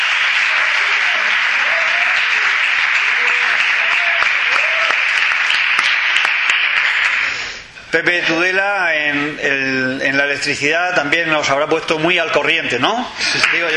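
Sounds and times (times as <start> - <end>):
audience applause: 0.0 - 7.5, 13.3 - 13.7
speech: 7.9 - 13.7.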